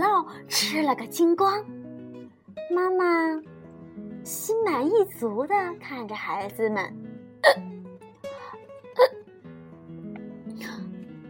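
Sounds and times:
speech: 0.4 - 1.8, 2.6 - 3.5, 4.2 - 7.7
hiccup: 7.4 - 7.7, 8.9 - 9.2.

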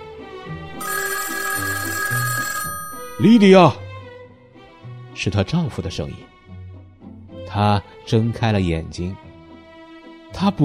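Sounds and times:
telephone ringing with a high-pitched electronic tone: 0.7 - 3.8
speech: 3.2 - 3.8, 5.2 - 6.3, 7.5 - 9.2, 10.3 - 10.6.

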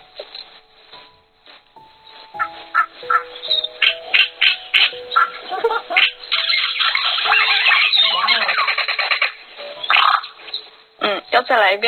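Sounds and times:
cacique bird calls in the Amazon: 2.3 - 11.2
speech: 3.0 - 3.7, 11.5 - 11.8.

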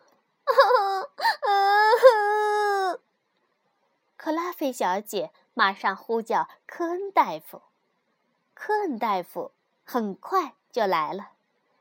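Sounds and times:
young girl crying in bed: 0.5 - 3.0
speech: 4.3 - 7.7, 8.6 - 11.3.

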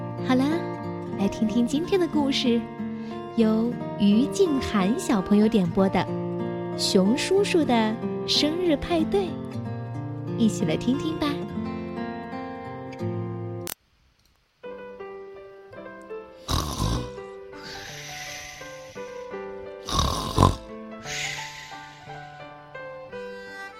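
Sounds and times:
gentle steady music bed: 0.0 - 13.7, 14.6 - 23.7
speech: 1.2 - 6.2, 6.8 - 9.5, 10.4 - 11.4
loud rasping snores: 16.4 - 22.2.

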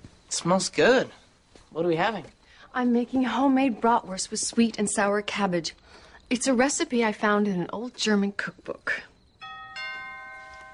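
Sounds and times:
speech: 0.3 - 9.1
doorbell ringing: 9.4 - 10.7.

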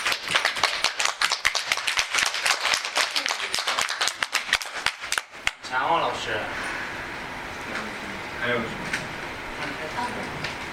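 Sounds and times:
audience applause: 0.0 - 5.3
speech: 5.7 - 6.8, 7.7 - 9.0, 9.6 - 10.7.

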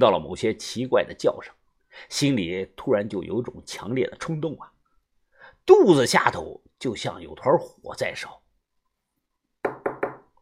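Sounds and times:
speech: 0.0 - 4.7, 5.6 - 8.4
knocking on glass: 9.6 - 10.3.

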